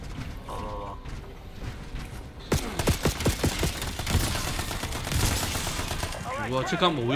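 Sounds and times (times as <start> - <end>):
gunfire: 2.5 - 6.5
speech: 6.5 - 7.1.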